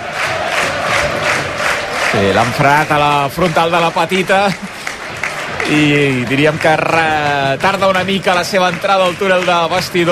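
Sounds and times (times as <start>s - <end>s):
stadium crowd applauding: 0.0s - 10.1s
speech: 2.1s - 4.7s, 5.7s - 10.1s.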